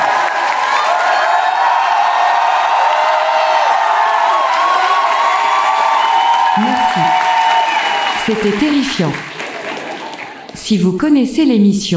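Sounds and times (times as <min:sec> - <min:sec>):
cheers and whoops: 0:00.0 - 0:08.8
large audience shouting on cue: 0:00.0 - 0:10.5
speech: 0:08.3 - 0:09.3, 0:10.7 - 0:11.9.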